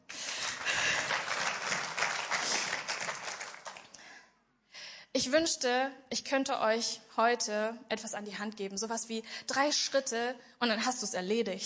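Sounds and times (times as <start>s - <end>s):
audience applause: 0.1s - 4.0s
speech: 5.2s - 11.6s.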